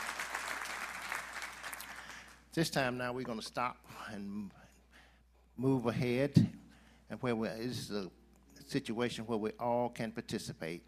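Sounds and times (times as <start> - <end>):
audience applause: 0.0 - 2.4
speech: 2.6 - 4.6, 5.6 - 10.8.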